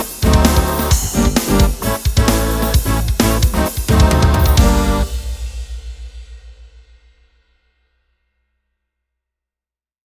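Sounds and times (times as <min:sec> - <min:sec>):
folk jazz music: 0:00.0 - 0:05.3.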